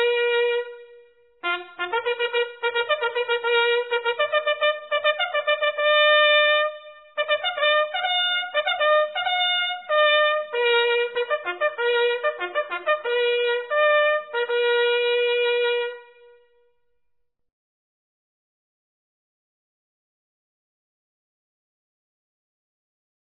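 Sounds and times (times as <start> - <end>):
long bugle call: 0.0 - 16.4.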